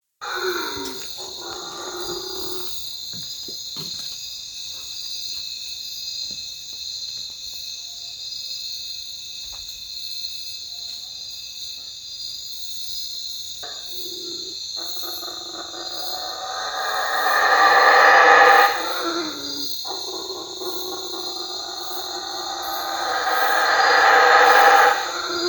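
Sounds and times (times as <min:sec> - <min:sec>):
howler monkey: 0:00.2 - 0:02.8, 0:13.6 - 0:25.4.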